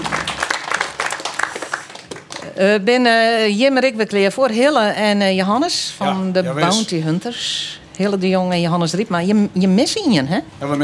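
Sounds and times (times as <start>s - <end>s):
audience applause: 0.0s - 2.6s
speech: 2.6s - 10.8s.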